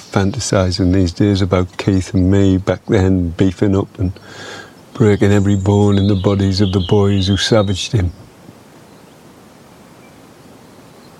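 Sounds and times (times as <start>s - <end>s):
wind: 0.0s - 11.1s
speech: 0.1s - 8.2s.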